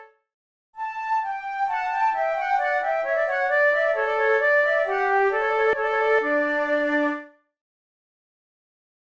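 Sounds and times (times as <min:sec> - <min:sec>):
flute playing a trio sonata gavotte: 0:00.8 - 0:07.4.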